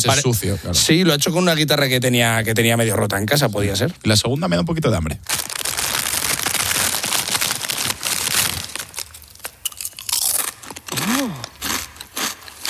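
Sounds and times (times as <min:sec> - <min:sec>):
speech: 0:00.0 - 0:05.5
eating crunchy potato chips: 0:05.2 - 0:12.6.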